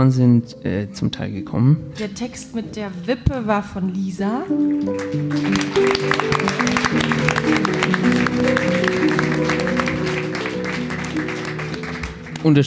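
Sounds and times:
speech: 0.0s - 8.8s, 12.4s - 12.6s
audience applause: 4.6s - 12.6s.

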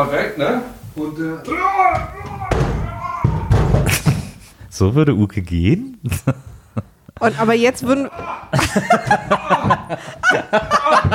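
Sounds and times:
speech: 0.0s - 2.4s, 4.7s - 11.1s
door slammed shut very loudly: 1.5s - 4.4s
laughter: 6.0s - 11.1s.

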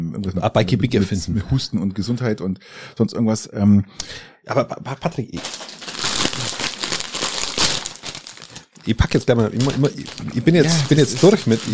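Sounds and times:
speech: 0.1s - 5.8s, 8.8s - 11.7s
crisp packet crinkling: 5.4s - 11.7s.

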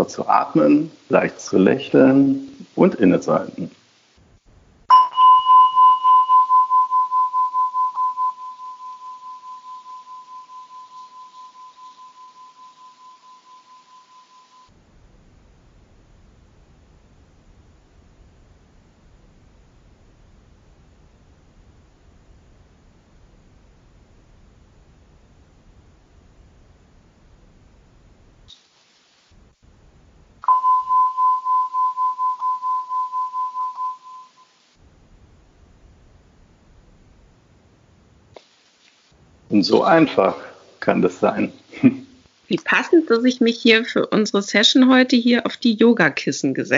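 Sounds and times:
speech: 0.0s - 3.8s, 39.6s - 46.7s
singing bowl being struck and ringing: 4.9s - 14.7s, 30.4s - 34.6s.

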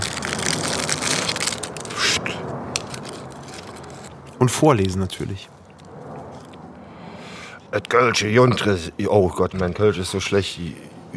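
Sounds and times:
fortune cookie cracking: 0.0s - 4.4s
plastic fortune cookie wrapper crinkling and tearing: 0.0s - 4.4s
speech: 4.4s - 5.6s, 7.7s - 11.0s.

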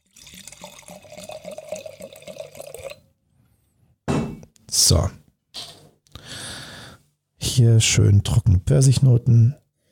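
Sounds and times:
wine poured from screw-cap bottle into glass: 0.0s - 3.1s
speech: 4.8s - 5.2s, 7.6s - 9.6s.

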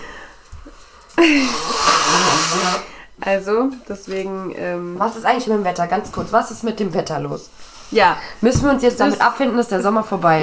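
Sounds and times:
speech: 1.2s - 1.9s, 2.6s - 10.4s
nose blowing: 1.2s - 3.1s.

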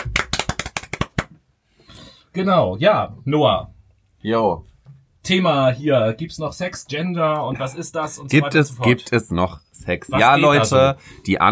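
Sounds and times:
applause: 0.0s - 1.3s
speech: 2.4s - 11.5s.

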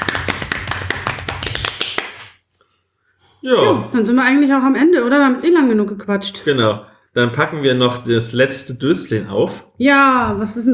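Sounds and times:
hand clapping: 0.0s - 2.4s
speech: 3.4s - 10.7s.

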